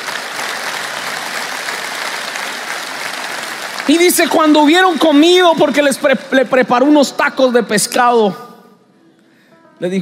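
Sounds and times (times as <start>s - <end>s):
audience applause: 0.0s - 5.8s
speech: 3.9s - 8.5s, 9.8s - 10.0s.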